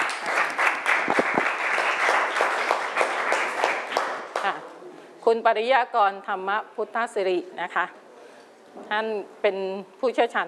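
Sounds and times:
applause: 0.0 - 4.6
speech: 5.3 - 8.0, 8.7 - 10.4.

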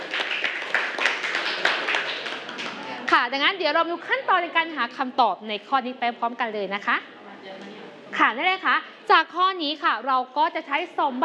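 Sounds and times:
classroom students clapping for a student: 0.0 - 2.9
speech: 3.2 - 11.2.

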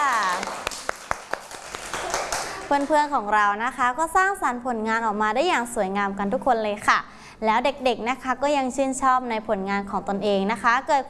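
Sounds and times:
young children clapping for a classmate's molded artwork: 0.0 - 3.1
speech: 2.7 - 11.0.

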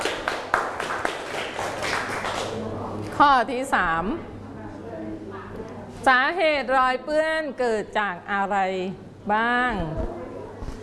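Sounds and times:
group of children clapping in a classroom: 0.0 - 2.6
speech: 3.2 - 4.3, 6.0 - 10.2.

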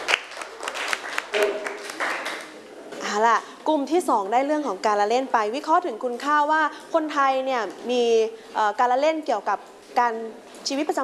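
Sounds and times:
students clapping in a classroom for a classmate: 0.0 - 2.6
speech: 3.2 - 11.0.

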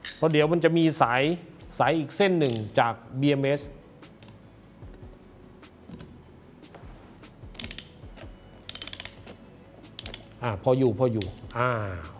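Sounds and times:
soft mechanical background: 0.0 - 12.1
speech: 0.2 - 3.8, 10.4 - 12.1
wrench tightening a bolt on a battery management system cable connection: 2.4 - 2.8, 7.4 - 10.4, 11.1 - 11.6.

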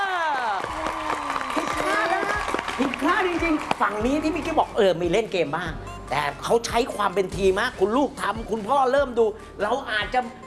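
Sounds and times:
applause, hands clapping: 0.0 - 4.6
speech: 2.8 - 10.4.

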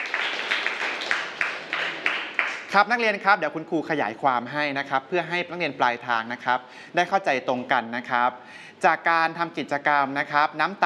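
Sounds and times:
students clapping for a classmate in a classroom: 0.0 - 2.7
speech: 2.7 - 10.8.

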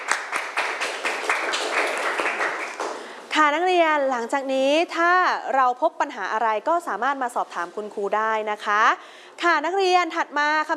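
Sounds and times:
classroom of students applauding: 0.0 - 3.1
speech: 3.4 - 10.7.

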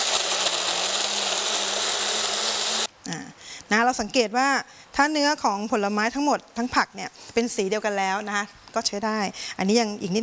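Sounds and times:
blender blending fruit at high speed: 0.0 - 2.9
speech: 3.1 - 10.2.

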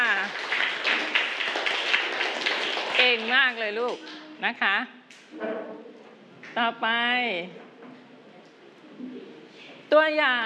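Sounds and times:
students in a class clapping for group 5: 0.0 - 4.3
speech: 3.1 - 5.9, 6.6 - 7.6, 9.9 - 10.4.

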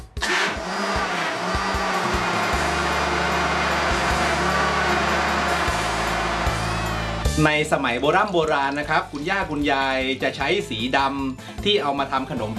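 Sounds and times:
blender grinding coconut husk: 0.2 - 7.3
speech: 7.4 - 12.5.

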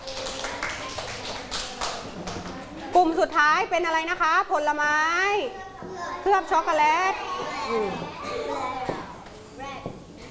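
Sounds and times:
school class clapping during a lesson: 0.0 - 2.8
speech: 3.0 - 8.2.

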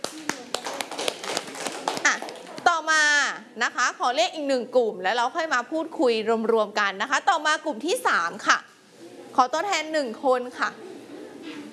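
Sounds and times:
students clapping for a group in a classroom: 0.0 - 2.7
speech: 2.8 - 8.7, 9.4 - 10.8.

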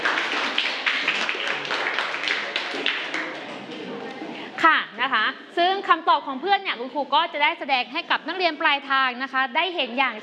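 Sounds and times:
students clapping: 0.0 - 3.8
speech: 5.6 - 10.2.

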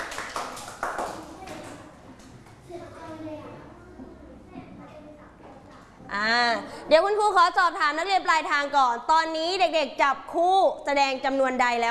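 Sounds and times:
group of children clapping: 0.0 - 2.6
young voices chattering in the room: 1.1 - 6.8
speech: 6.2 - 11.8.

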